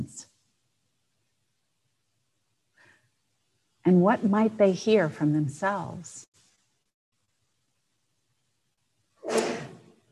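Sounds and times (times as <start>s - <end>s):
speech: 3.9s - 6.3s
sneeze: 9.2s - 10.0s.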